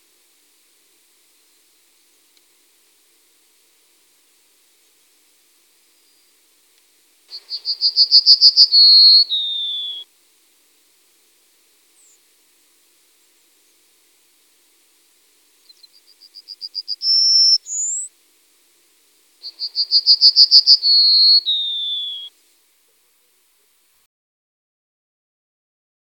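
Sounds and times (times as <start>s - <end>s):
Emberiza citrinella call: 7.3s - 10.1s, 12.0s - 12.2s, 15.6s - 18.1s, 19.4s - 22.3s.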